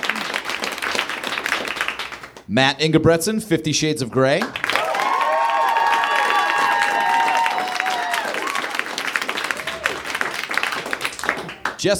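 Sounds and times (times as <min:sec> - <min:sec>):
crowd clapping: 0:00.0 - 0:02.5, 0:04.1 - 0:11.9
speech: 0:02.5 - 0:04.6
high whoops and cheers: 0:04.7 - 0:10.2.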